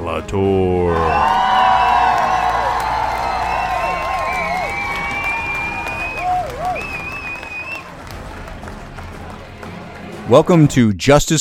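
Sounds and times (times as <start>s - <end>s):
speech: 0.1s - 1.4s, 10.3s - 11.4s
audience applause welcoming the hosts of a law-themed show: 0.9s - 10.5s
audience cheering with whistled whoops: 1.0s - 7.9s.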